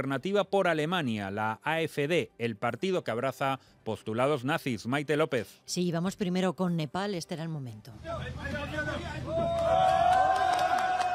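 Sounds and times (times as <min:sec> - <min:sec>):
speech: 0:00.0 - 0:10.0
crowd applause and cheering: 0:08.0 - 0:11.1.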